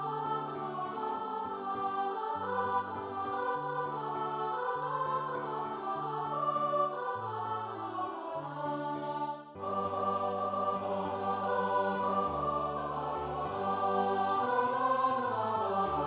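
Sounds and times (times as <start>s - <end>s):
SATB choir singing: 0.0s - 16.0s
piano: 0.0s - 16.0s.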